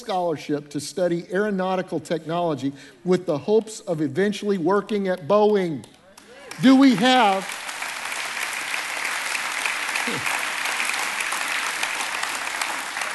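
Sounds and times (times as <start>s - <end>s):
speech: 0.0s - 6.0s, 6.6s - 7.7s
audience applause: 6.3s - 13.1s.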